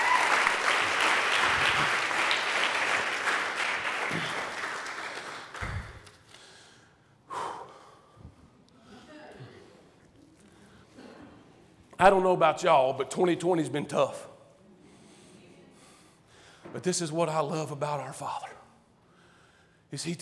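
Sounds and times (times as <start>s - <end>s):
audience applause: 0.0s - 6.2s
speech: 12.0s - 14.3s, 16.8s - 18.6s, 19.9s - 20.2s.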